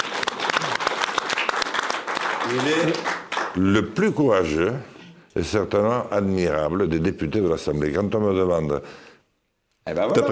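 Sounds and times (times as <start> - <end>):
audience applause: 0.0 - 3.7
speech: 2.5 - 9.0, 9.8 - 10.3.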